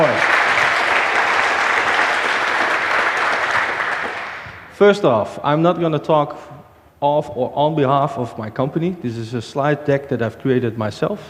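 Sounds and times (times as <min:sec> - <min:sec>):
audience applause: 0:00.0 - 0:04.7
speech: 0:04.8 - 0:11.2.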